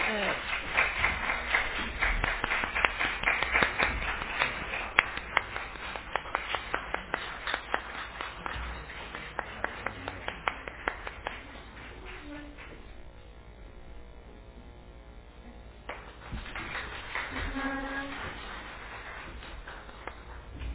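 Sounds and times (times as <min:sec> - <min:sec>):
audience applause: 0:00.0 - 0:12.8, 0:15.9 - 0:20.6.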